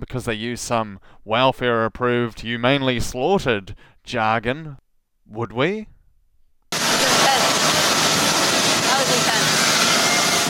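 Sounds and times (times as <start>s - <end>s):
speech: 0.1s - 5.9s
water spraying to wash animal carcasses in a slaughterhouse: 6.8s - 10.4s.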